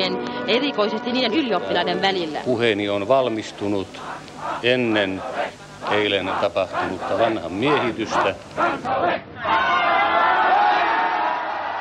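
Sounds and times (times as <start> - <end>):
speech: 0.0 - 9.8
crowd rushing in through open door: 3.8 - 11.8.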